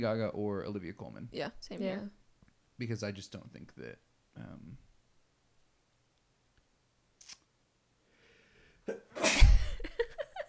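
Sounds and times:
speech: 0:00.0 - 0:02.2, 0:02.8 - 0:04.9
sneeze: 0:08.9 - 0:10.0
soft breathy vocal sounds like quiet laughter: 0:09.2 - 0:10.4.

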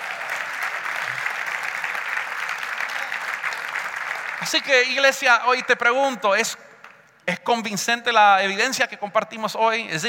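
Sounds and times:
audience applauding: 0:00.0 - 0:05.9
speech: 0:04.4 - 0:06.7, 0:07.3 - 0:10.0.

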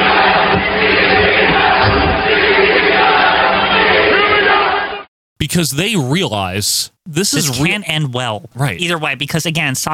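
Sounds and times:
wrestling crowd chanting: 0:00.0 - 0:05.1
speech: 0:05.4 - 0:09.9.

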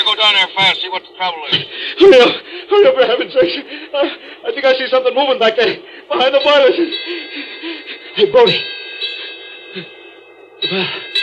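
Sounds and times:
speech: 0:00.2 - 0:08.8, 0:09.7 - 0:10.0, 0:10.6 - 0:11.2
bell ringing: 0:06.1 - 0:11.2.

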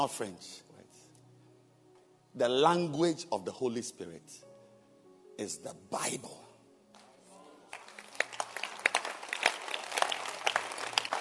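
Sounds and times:
speech: 0:00.0 - 0:00.7, 0:02.4 - 0:04.5, 0:05.4 - 0:06.4
audience clapping: 0:07.0 - 0:11.2.

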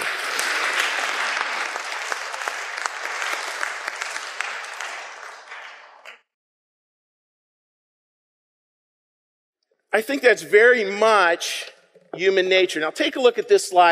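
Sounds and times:
audience applause: 0:00.0 - 0:06.3
speech: 0:10.0 - 0:13.9.

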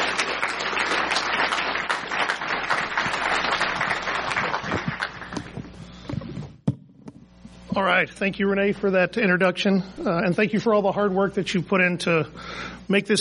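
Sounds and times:
audience applause: 0:00.0 - 0:05.7
speech: 0:07.8 - 0:13.2.

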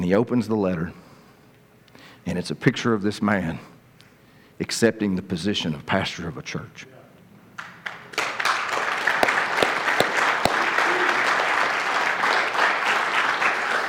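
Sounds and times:
speech: 0:00.0 - 0:01.0, 0:02.2 - 0:03.7, 0:04.6 - 0:07.0
audience applause: 0:08.2 - 0:13.8.

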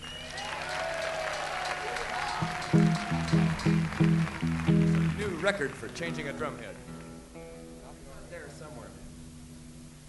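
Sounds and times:
audience applause: 0:00.0 - 0:07.2
speech: 0:05.5 - 0:06.9.

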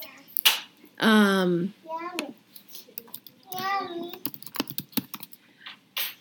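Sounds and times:
person speaking: 0:01.0 - 0:05.3
typing on a computer keyboard: 0:03.0 - 0:05.4.

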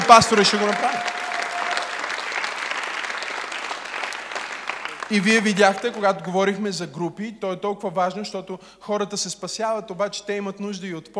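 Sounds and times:
audience applauding: 0:00.0 - 0:06.3
speech: 0:00.1 - 0:01.2, 0:05.1 - 0:11.1.

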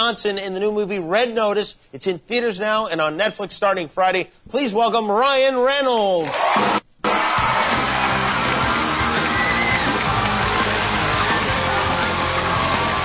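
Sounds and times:
speech: 0:00.0 - 0:06.8
studio audience cheering: 0:06.2 - 0:13.0.

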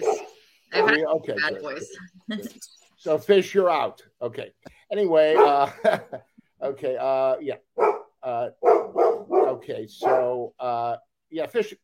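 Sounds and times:
dog barking: 0:00.0 - 0:01.0, 0:05.4 - 0:05.7, 0:07.8 - 0:10.4
speech: 0:00.8 - 0:09.0, 0:09.6 - 0:11.8
laughter: 0:05.4 - 0:06.4.

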